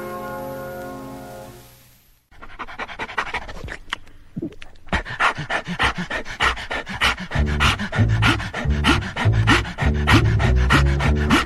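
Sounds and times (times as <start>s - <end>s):
large dog panting: 2.3s - 3.8s, 4.9s - 11.4s
faint wet mouth sounds of dog: 3.1s - 5.5s.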